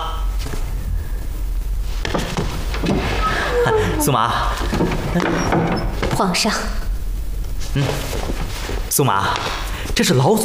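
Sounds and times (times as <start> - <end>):
steady hiss: 0.0 - 10.4
door being opened with rattling and scraping: 2.1 - 6.4
speech: 4.0 - 6.8, 7.7 - 8.4, 9.0 - 10.4.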